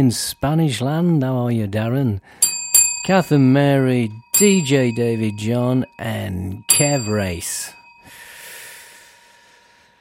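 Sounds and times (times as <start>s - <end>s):
speech: 0.0s - 2.4s, 3.0s - 7.8s
sharp intake of breath: 8.1s - 9.9s.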